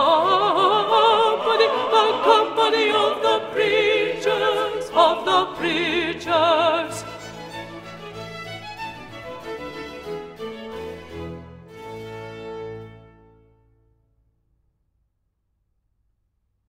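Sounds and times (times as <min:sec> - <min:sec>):
contralto voices singing: 0:00.0 - 0:07.6.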